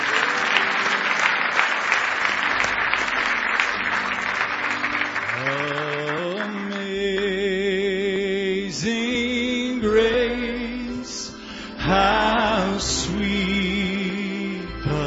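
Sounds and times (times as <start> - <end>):
audience applause: 0.0 - 7.4
rising sung or organ-like tone: 5.2 - 15.0.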